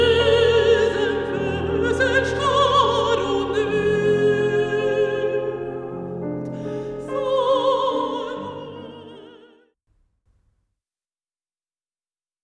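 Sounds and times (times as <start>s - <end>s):
person singing in a church: 0.0s - 9.7s.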